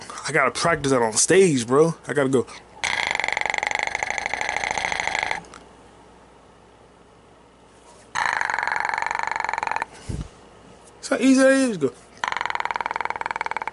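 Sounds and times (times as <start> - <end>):
speech: 0.3 - 2.7, 11.2 - 12.1
deliberate loud burps: 2.8 - 5.6, 8.2 - 9.9, 12.2 - 13.7.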